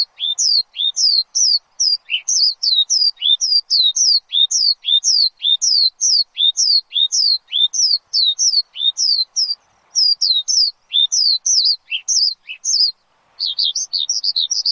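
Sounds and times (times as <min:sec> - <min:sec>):
Javan bush lark singing on a lure recording: 0:00.0 - 0:14.6.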